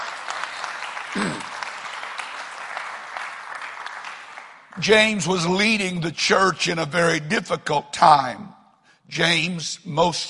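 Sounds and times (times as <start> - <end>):
audience clapping hands: 0.0 - 5.3
speech: 4.8 - 10.2.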